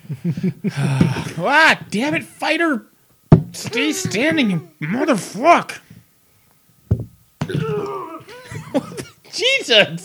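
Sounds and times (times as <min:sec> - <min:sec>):
speech: 0:00.2 - 0:02.9, 0:03.6 - 0:05.8, 0:08.7 - 0:10.0
short thump: 0:03.3 - 0:04.4, 0:06.9 - 0:07.6.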